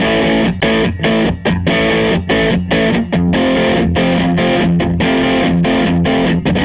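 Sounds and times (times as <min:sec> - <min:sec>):
guitar loop: 0:00.0 - 0:06.6.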